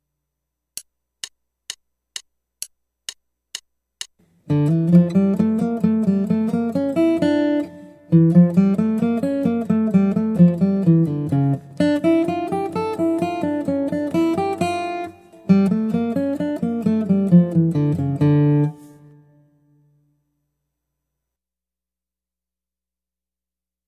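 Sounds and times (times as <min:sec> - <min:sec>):
guitar: 0:04.2 - 0:20.1.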